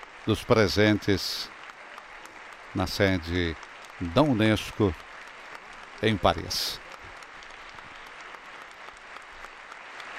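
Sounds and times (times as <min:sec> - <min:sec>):
long applause: 0:00.0 - 0:10.1
speech: 0:00.2 - 0:01.6, 0:02.8 - 0:05.1, 0:06.0 - 0:06.8.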